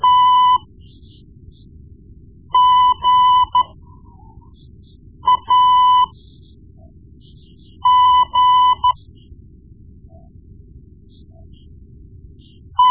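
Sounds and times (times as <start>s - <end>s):
morse code beeps: 0.0s - 0.7s, 2.6s - 3.8s, 5.2s - 6.2s, 7.8s - 9.0s.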